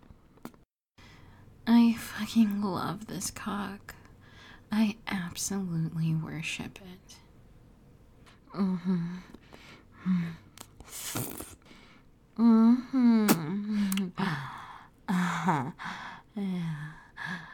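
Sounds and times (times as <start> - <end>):
speech: 1.7 - 4.0, 4.7 - 7.2, 8.5 - 9.4, 10.0 - 11.6, 12.4 - 14.5, 15.4 - 16.8
moans and gasps: 8.5 - 17.5.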